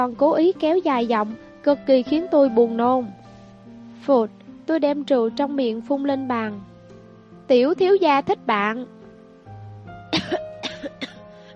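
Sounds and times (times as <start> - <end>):
speech: 0.0 - 3.2, 4.0 - 6.7, 7.5 - 9.0
violent choking cough: 10.1 - 11.2.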